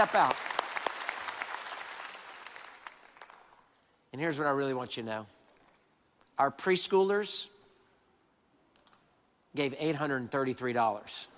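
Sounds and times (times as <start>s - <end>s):
speech: 0.0s - 0.5s, 4.1s - 5.4s, 6.4s - 7.5s, 9.5s - 11.3s
audience applauding: 0.0s - 3.7s.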